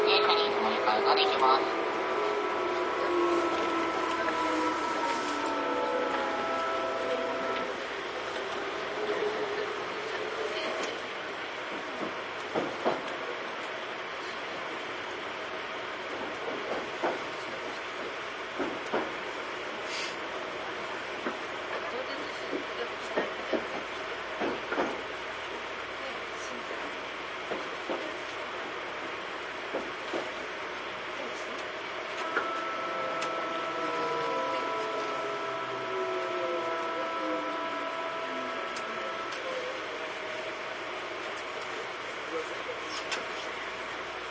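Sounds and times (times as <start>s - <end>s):
Tobu 9000 series train motor whines: 0.0s - 10.7s, 32.2s - 42.3s
Tobu 9000 series train running between Kotake-mukaihara and Hiyoshi: 0.0s - 44.3s.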